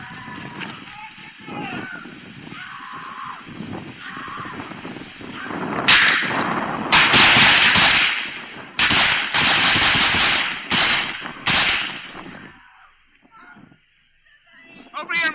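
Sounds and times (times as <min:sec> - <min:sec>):
gunshots fired by police during a shooting incident: 0:05.9 - 0:12.5.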